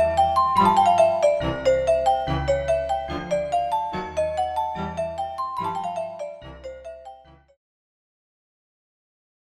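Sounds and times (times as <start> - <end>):
music for babies: 0.0 - 7.6.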